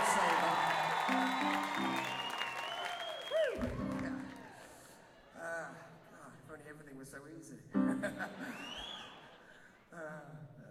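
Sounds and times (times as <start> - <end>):
audience clapping: 0.0 - 5.1
laughter: 7.8 - 9.6.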